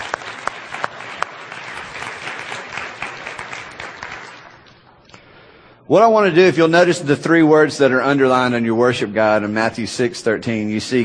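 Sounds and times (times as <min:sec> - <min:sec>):
audience applause: 0:00.0 - 0:04.8
speech: 0:05.9 - 0:11.0.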